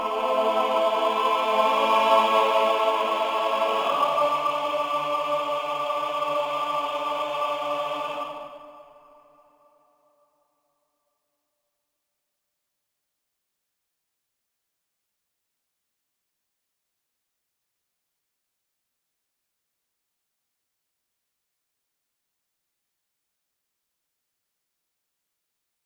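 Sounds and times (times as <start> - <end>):
choir singing: 0.0 - 9.9.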